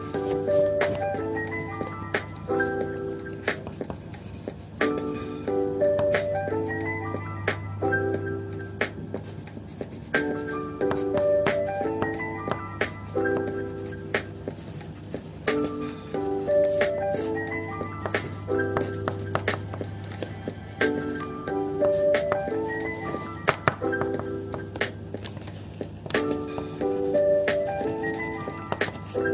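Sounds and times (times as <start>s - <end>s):
music: 0.0s - 29.3s
scribbling: 2.2s - 5.4s, 9.2s - 29.3s.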